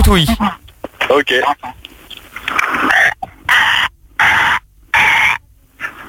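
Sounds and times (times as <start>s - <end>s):
speech: 0.1s - 1.8s
baby crocodile cry: 2.6s - 5.4s.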